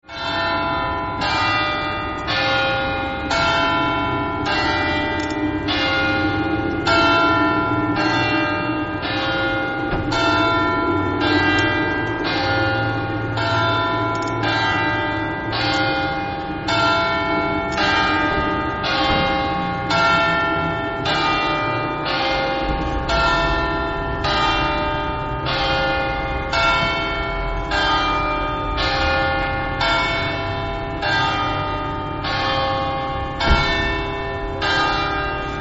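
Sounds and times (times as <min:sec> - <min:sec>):
bells ringing: 0:00.0 - 0:35.5.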